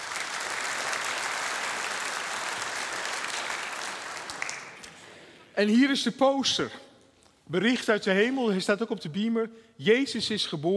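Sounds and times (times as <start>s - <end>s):
audience applause: 0.0s - 5.0s
speech: 5.6s - 6.8s, 7.5s - 10.7s.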